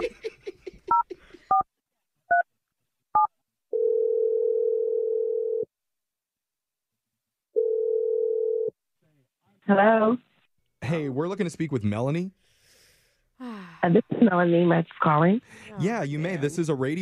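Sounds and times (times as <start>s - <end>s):
long steady telephone ringing tones: 3.7s - 5.7s, 7.6s - 8.7s
speech: 9.7s - 10.3s, 10.9s - 12.5s, 13.8s - 17.0s.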